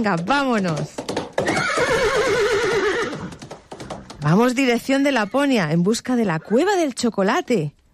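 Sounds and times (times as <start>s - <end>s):
speech: 0.0s - 2.6s, 4.2s - 7.8s
horse whinnying: 1.4s - 3.4s.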